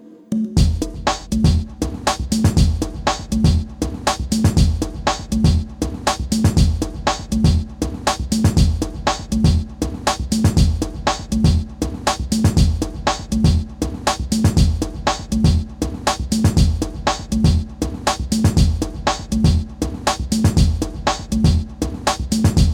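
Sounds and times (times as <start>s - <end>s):
bass: 0.6s - 22.7s.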